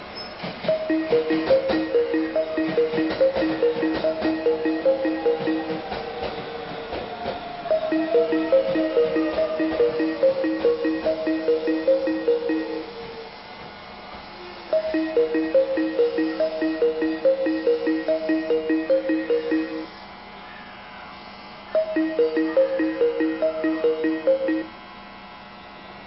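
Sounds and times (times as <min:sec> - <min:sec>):
music track: 0:00.7 - 0:06.0, 0:07.7 - 0:13.0, 0:14.7 - 0:19.9, 0:21.8 - 0:24.7.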